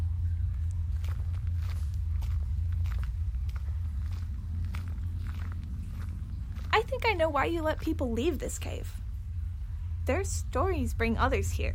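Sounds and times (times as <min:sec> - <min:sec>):
footsteps walking along a cave path: 0:00.0 - 0:08.7
low rumble: 0:00.0 - 0:11.7
speech: 0:07.0 - 0:09.0, 0:10.1 - 0:11.7.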